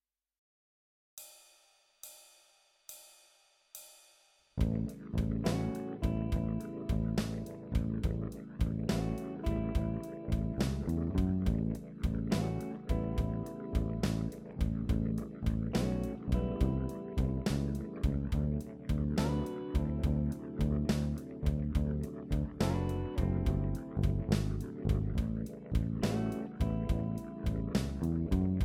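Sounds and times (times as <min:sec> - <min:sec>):
blues guitar backing: 0:04.6 - 0:28.6.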